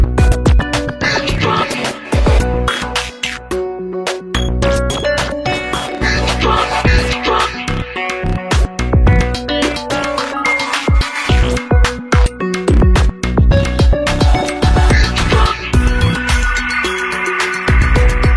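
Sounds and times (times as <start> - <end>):
ringtone: 0.2 - 8.1, 9.1 - 18.3.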